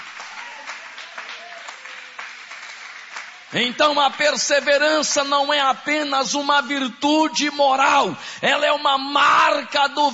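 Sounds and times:
audience applauding: 0:00.0 - 0:04.9
speech: 0:03.5 - 0:10.1.

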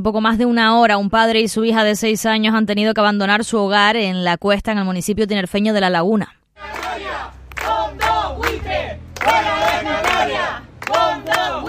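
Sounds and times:
speech: 0:00.0 - 0:06.8
neighbours shouting during an eviction: 0:06.6 - 0:11.6.

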